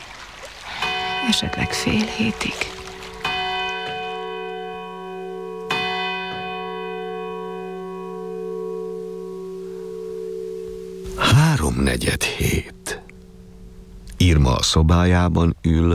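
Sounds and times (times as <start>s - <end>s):
clock bell striking three o'clock: 0.8s - 15.2s
speech: 1.2s - 2.8s, 11.8s - 12.8s, 14.3s - 15.9s.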